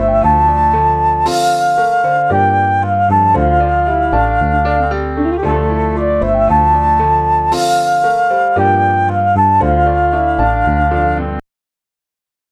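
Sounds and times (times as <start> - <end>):
exotic classical music: 0.0 - 11.4.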